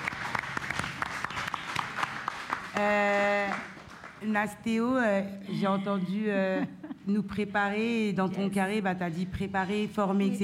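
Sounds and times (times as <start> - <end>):
audience applause: 0.0 - 4.2
speech: 2.8 - 3.1, 4.2 - 10.4.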